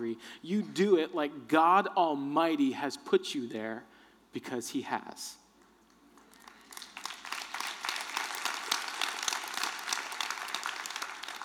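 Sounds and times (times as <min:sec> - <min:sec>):
speech: 0:00.0 - 0:05.4
audience clapping: 0:06.1 - 0:11.4.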